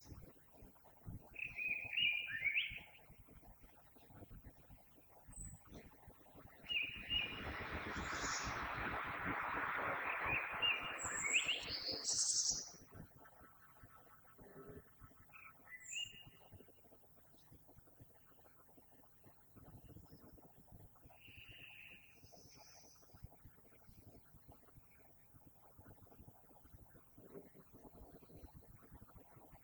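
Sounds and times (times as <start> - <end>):
common blackbird song: 1.3 - 3.2, 4.9 - 12.9, 14.7 - 17.5, 21.1 - 23.1.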